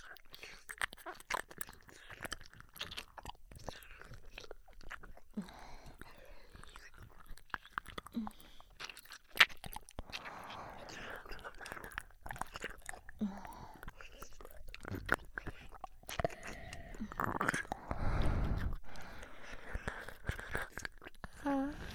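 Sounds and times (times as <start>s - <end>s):
ear licking: 0.0s - 21.9s
faint breathy sounds: 5.4s - 6.6s, 10.0s - 11.6s, 13.2s - 14.4s, 16.2s - 21.9s.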